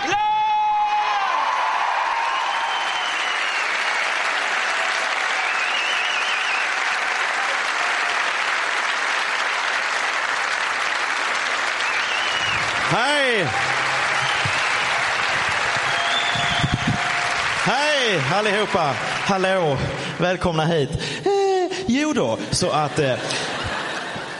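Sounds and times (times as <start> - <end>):
audience cheers and whoops: 0.0 - 8.5, 11.8 - 18.2
audience applause for a comedian at a stand-up show in Skåne: 1.1 - 20.4
speech: 18.4 - 21.3, 21.9 - 23.5
laughter: 22.6 - 24.3.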